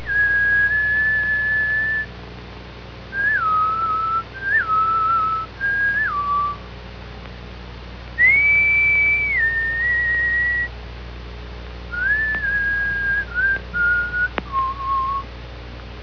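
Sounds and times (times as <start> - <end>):
person whistling: 0.1 - 2.1, 3.2 - 6.6, 8.2 - 10.7, 12.0 - 15.2.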